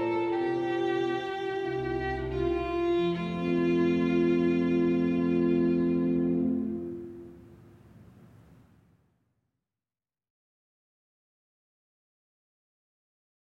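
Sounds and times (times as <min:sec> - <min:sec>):
violin in a sonata: 0:00.0 - 0:07.5
basso continuo: 0:00.0 - 0:08.8.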